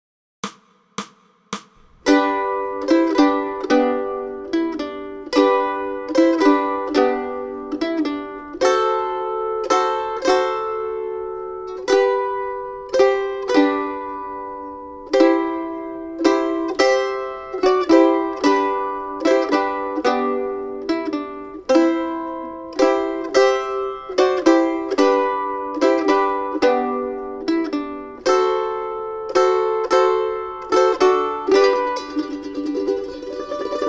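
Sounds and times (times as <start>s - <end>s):
mandolin: 1.9s - 33.8s.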